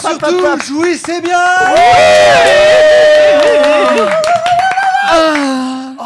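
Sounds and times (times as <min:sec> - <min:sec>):
speech: 0:00.0 - 0:04.2, 0:05.1 - 0:05.7
scattered sharp claps: 0:00.0 - 0:05.5
crowd cheering and whooping: 0:01.6 - 0:05.5.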